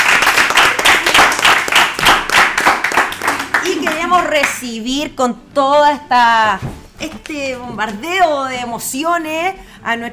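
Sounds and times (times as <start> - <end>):
applause: 0.0 - 4.6
speech: 4.2 - 10.1.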